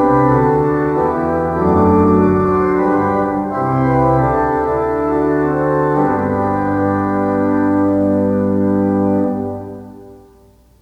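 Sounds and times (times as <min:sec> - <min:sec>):
organ music for worship services: 0:00.0 - 0:10.4.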